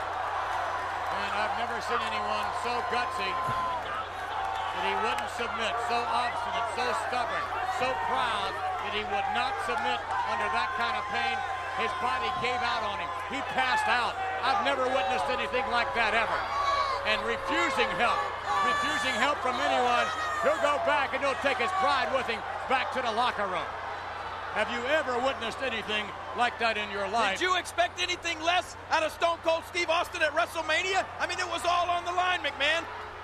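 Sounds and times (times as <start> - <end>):
arena crowd cheering: 0.0 - 33.2
speech: 1.6 - 4.0, 4.8 - 23.8, 24.5 - 33.0.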